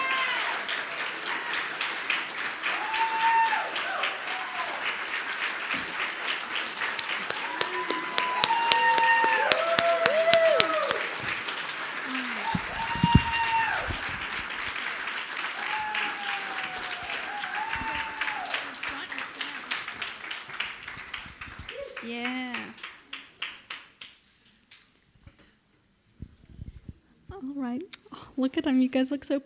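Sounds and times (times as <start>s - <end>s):
whoops and cheers: 0.0s - 1.8s, 2.6s - 5.0s, 7.0s - 11.2s, 12.1s - 14.3s, 15.4s - 19.0s, 21.7s - 22.1s
crowd applauding: 0.0s - 25.0s
speech: 28.5s - 29.4s.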